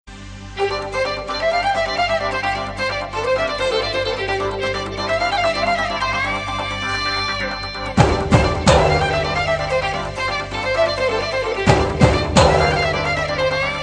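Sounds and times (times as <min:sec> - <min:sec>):
cool music: 0:00.1 - 0:13.8.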